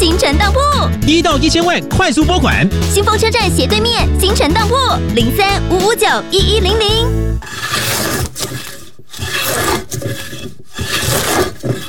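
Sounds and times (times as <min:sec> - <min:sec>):
speech: 0:00.2 - 0:08.6
blade carving wood: 0:06.6 - 0:11.8.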